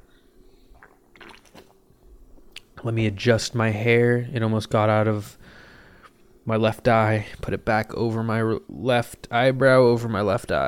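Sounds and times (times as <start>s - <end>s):
low hum: 0.0s - 10.6s
slurping sip of beer: 0.7s - 1.8s
swallow: 0.7s - 1.8s
speech: 2.8s - 5.4s, 6.4s - 10.6s.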